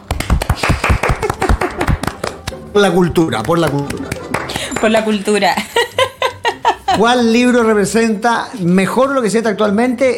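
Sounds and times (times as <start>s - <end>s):
applause: 0.0s - 2.6s, 3.2s - 5.2s
laughter: 1.0s - 2.2s, 3.3s - 7.4s
speech: 2.8s - 4.2s, 4.8s - 5.9s, 7.0s - 10.1s.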